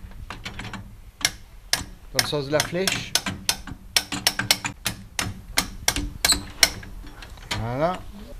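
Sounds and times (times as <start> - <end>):
mechanical clock gear train ratchet clicks while being wound: 0.4 - 6.9
speech: 2.1 - 3.4, 7.6 - 8.1.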